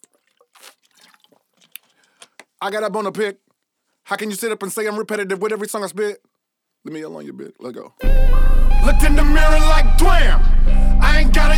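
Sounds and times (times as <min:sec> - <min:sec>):
person drinking water: 0:00.0 - 0:02.3
speech: 0:02.6 - 0:03.4, 0:04.1 - 0:11.5.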